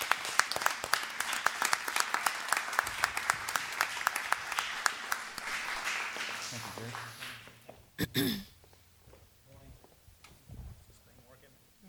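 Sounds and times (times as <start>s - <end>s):
audience applause: 0.0s - 7.6s
speech: 8.1s - 8.5s.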